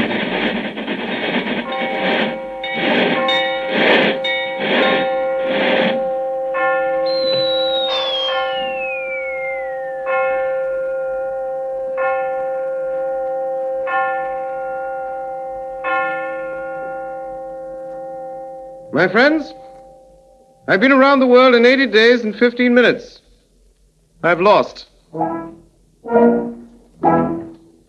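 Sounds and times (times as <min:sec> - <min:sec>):
clocks striking at a train station: 0:00.0 - 0:14.5
speech: 0:19.0 - 0:19.6, 0:20.7 - 0:23.2, 0:24.2 - 0:27.4.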